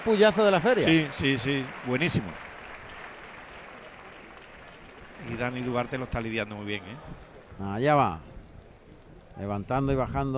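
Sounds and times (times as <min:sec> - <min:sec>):
speech: 0:00.0 - 0:02.5, 0:05.4 - 0:08.3, 0:09.4 - 0:10.3
bullring crowd applause: 0:00.0 - 0:07.7.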